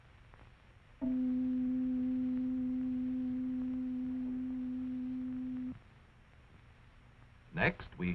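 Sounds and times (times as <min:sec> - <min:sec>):
pure tone at middle C pitch: 0:01.0 - 0:05.8.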